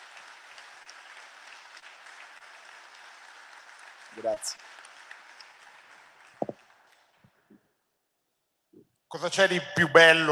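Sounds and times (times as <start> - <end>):
audience applause: 0.0 - 7.2
scattered claps: 0.0 - 7.4
speech: 4.1 - 4.7, 9.1 - 10.2.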